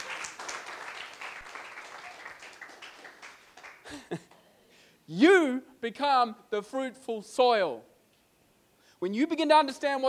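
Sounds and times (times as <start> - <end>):
audience clapping: 0.0 - 4.4
speech: 5.1 - 7.9, 9.0 - 10.0.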